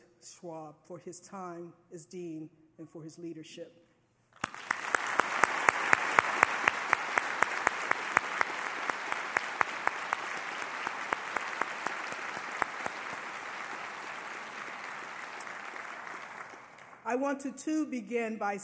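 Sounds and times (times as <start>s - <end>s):
speech: 0.2s - 3.9s, 17.1s - 18.6s
audience applause: 4.4s - 17.0s.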